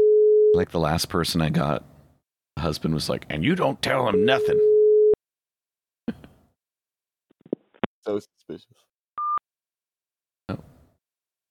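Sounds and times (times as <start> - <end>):
phone hung-up beep tone: 0.0 - 0.5, 4.1 - 5.2
speech: 0.6 - 1.9, 2.6 - 4.7, 8.0 - 8.9, 10.5 - 10.7.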